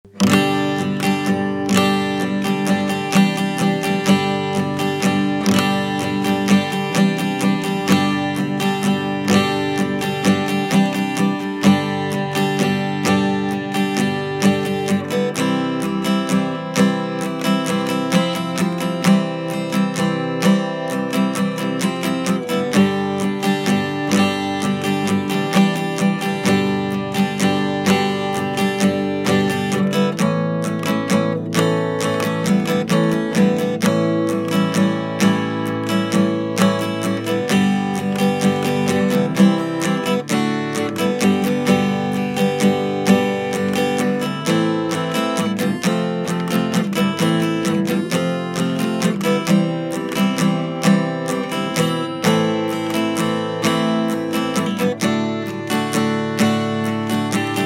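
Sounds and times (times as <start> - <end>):
acoustic guitar: 0.0 - 57.6.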